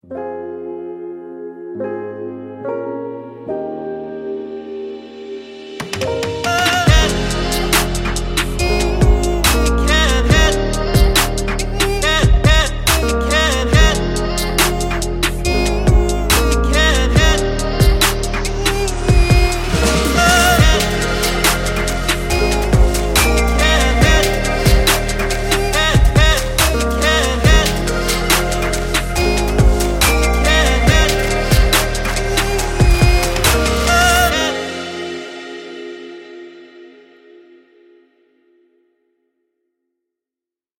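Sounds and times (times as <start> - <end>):
stylish trap music intro: 6.0 - 37.0.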